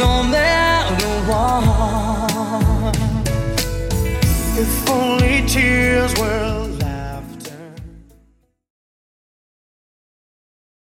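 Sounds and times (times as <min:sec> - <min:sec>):
90s drum loop at 93 BPM: 0:00.0 - 0:08.0.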